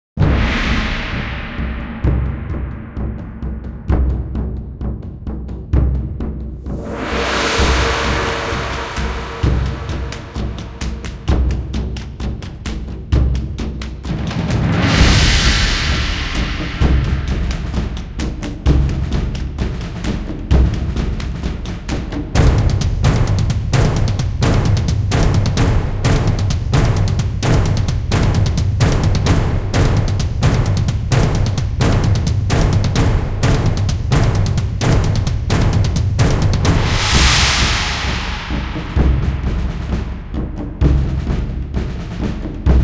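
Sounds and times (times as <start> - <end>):
percussion: 0.2 - 42.8.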